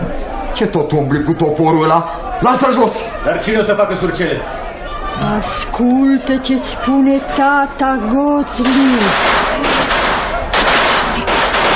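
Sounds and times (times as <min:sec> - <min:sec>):
speech: 0:00.6 - 0:09.6
thunder clap: 0:08.6 - 0:11.7.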